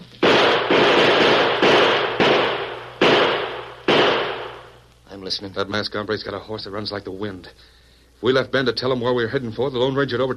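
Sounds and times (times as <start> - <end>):
gunshots fired from a window: 0.2 - 4.8
speech: 5.3 - 10.3.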